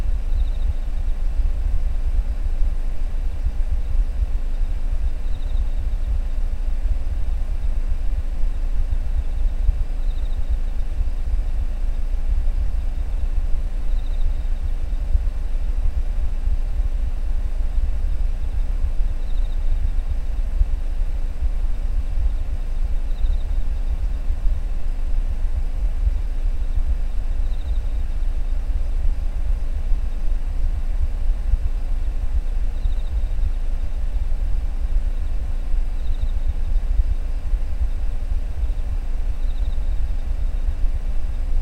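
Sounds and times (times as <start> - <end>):
insects chirping outside heard from inside a car: 0.0 - 41.6.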